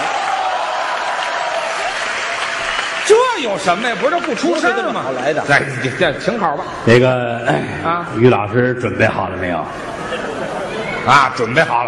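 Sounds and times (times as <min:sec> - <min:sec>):
audience applause: 0:00.0 - 0:05.5
speech: 0:03.4 - 0:10.2, 0:11.1 - 0:11.8.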